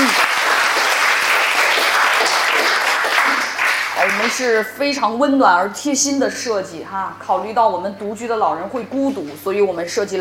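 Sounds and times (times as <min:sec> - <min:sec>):
audience applause: 0:00.0 - 0:04.7
speech: 0:04.4 - 0:10.1.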